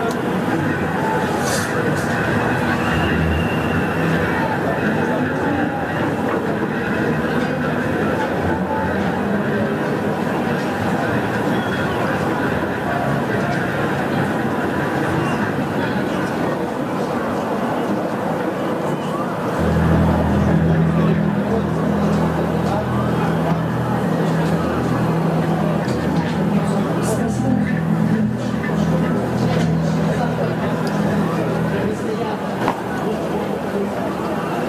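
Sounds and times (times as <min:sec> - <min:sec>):
many voices talking at a protest in Belarus: 0:00.0 - 0:34.6
low even droning hum: 0:01.7 - 0:05.2, 0:19.6 - 0:32.6.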